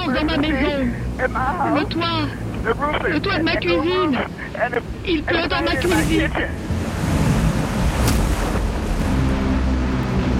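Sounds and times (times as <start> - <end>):
speech: 0.1 - 6.8
storm surge waves crashing: 5.4 - 10.3.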